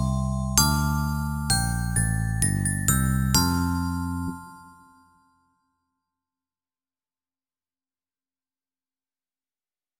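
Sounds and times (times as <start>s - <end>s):
glockenspiel: 0.0s - 6.1s.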